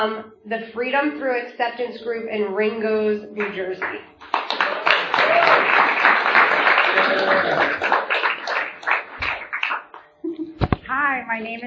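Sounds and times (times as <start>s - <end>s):
speech: 0.0s - 4.3s, 11.0s - 11.6s
audience applause at a recovery support-group meeting welcoming a speaker: 3.8s - 10.0s.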